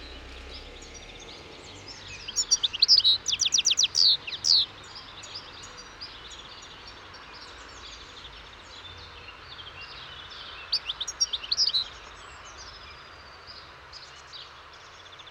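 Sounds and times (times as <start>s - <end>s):
European goldfinch Carduelis carduelis calling: 0.0s - 5.8s, 10.2s - 12.0s.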